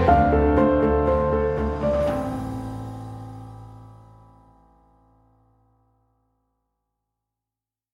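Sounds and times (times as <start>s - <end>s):
epic dramatic music: 0.0s - 4.6s.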